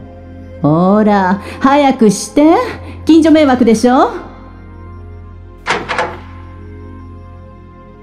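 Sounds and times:
speech: 0:00.6 - 0:04.3
door being unlocked: 0:05.6 - 0:06.6.

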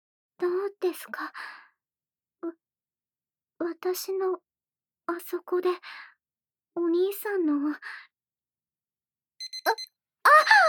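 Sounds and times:
speech: 0:00.8 - 0:01.6, 0:03.6 - 0:04.5, 0:05.1 - 0:06.1, 0:06.8 - 0:08.1, 0:09.6 - 0:10.6
electronic alarm beeps: 0:09.4 - 0:10.6.

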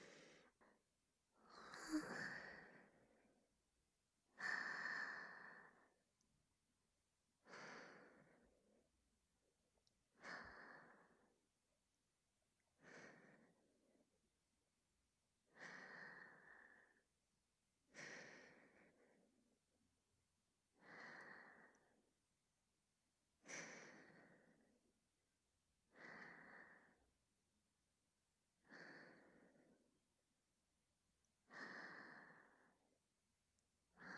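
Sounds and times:
breathing: 0:00.0 - 0:00.8, 0:01.4 - 0:03.4, 0:04.4 - 0:06.0, 0:07.4 - 0:08.9, 0:10.2 - 0:11.4, 0:12.8 - 0:14.1, 0:15.5 - 0:17.1, 0:17.9 - 0:19.5, 0:20.8 - 0:22.0, 0:23.4 - 0:24.9, 0:25.9 - 0:27.2, 0:28.6 - 0:30.0, 0:31.5 - 0:32.9, 0:33.9 - 0:34.1.

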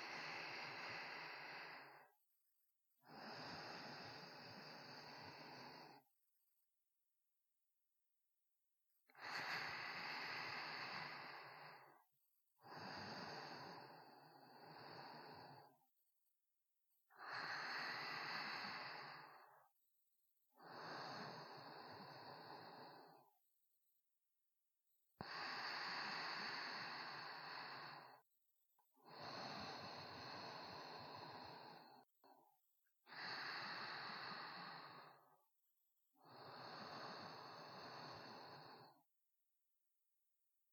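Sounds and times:
sparse sleeping breaths: 0:00.0 - 0:02.2, 0:03.0 - 0:06.1, 0:09.1 - 0:15.8, 0:17.1 - 0:19.7, 0:20.6 - 0:23.4, 0:25.2 - 0:35.5, 0:36.2 - 0:39.1.

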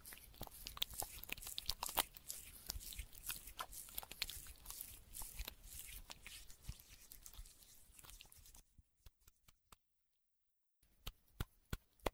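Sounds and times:
ASMR massage sounds in right and left ear: 0:00.0 - 0:08.6.

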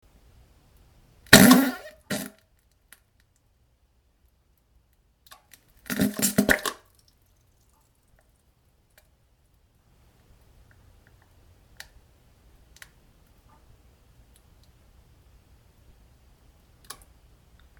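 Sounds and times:
farting: 0:01.3 - 0:02.3, 0:05.9 - 0:06.8
splashing: 0:05.8 - 0:07.1.

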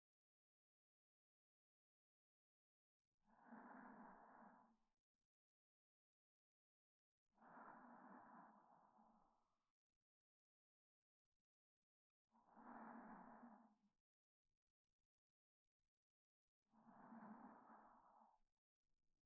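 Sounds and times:
reversed breathing of a sleeping person: 0:03.4 - 0:04.6, 0:07.4 - 0:09.2, 0:12.5 - 0:13.7, 0:16.8 - 0:18.3.

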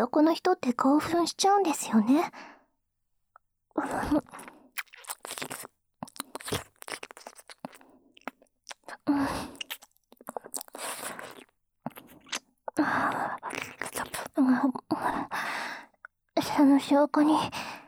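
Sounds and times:
speech: 0:00.0 - 0:02.5, 0:03.8 - 0:04.6, 0:09.0 - 0:09.6, 0:14.4 - 0:15.6, 0:16.5 - 0:17.8
ear licking ASMR sounds: 0:04.2 - 0:12.5.

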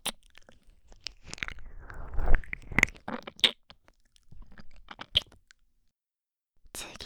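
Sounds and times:
ear licking and mouth ear massage ASMR: 0:00.0 - 0:05.4.

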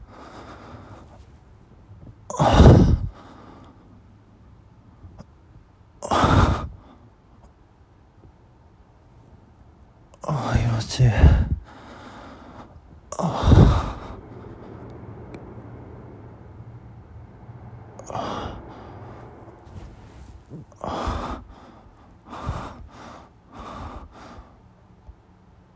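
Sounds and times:
breathing during masturbation: 0:00.0 - 0:01.4, 0:02.4 - 0:04.0, 0:10.2 - 0:15.2, 0:17.9 - 0:24.6
moaning during masturbation: 0:12.4 - 0:21.7.

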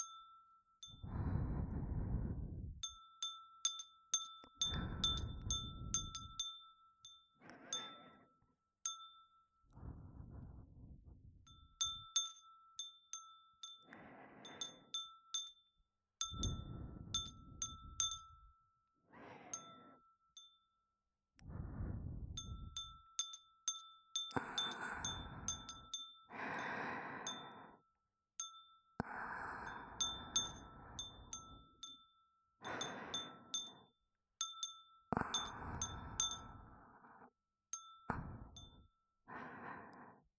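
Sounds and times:
glass wind chime: 0:00.0 - 0:01.2, 0:02.8 - 0:09.8, 0:11.5 - 0:18.7, 0:19.6 - 0:20.8, 0:22.4 - 0:27.6, 0:28.4 - 0:36.7, 0:37.8 - 0:39.0
breathing: 0:00.8 - 0:03.0, 0:04.5 - 0:06.5, 0:07.4 - 0:08.5, 0:09.7 - 0:12.2, 0:13.6 - 0:15.2, 0:16.2 - 0:18.4, 0:19.0 - 0:20.1, 0:21.4 - 0:23.0, 0:24.2 - 0:28.0, 0:29.0 - 0:32.0, 0:32.6 - 0:34.0, 0:35.1 - 0:40.3.

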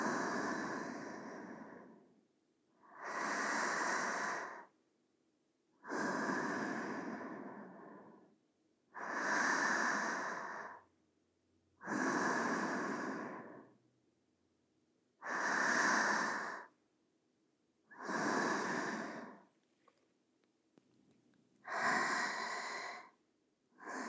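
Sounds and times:
sleeping breathing: 0:00.0 - 0:02.2, 0:02.8 - 0:04.7, 0:05.8 - 0:10.9, 0:11.8 - 0:13.8, 0:15.2 - 0:16.8, 0:17.9 - 0:19.5, 0:21.6 - 0:23.2, 0:23.8 - 0:24.0.

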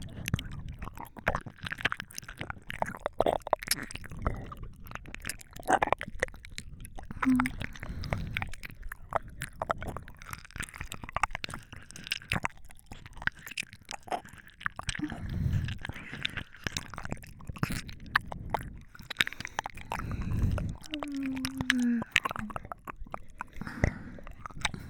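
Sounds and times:
ear licking on binaural microphone: 0:00.0 - 0:24.8
binaural microphone whispering in both ears: 0:20.5 - 0:22.7.

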